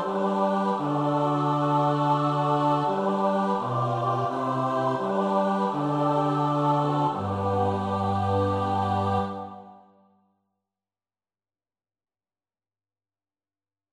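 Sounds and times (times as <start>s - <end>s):
four-part SATB choir: 0.0s - 10.1s.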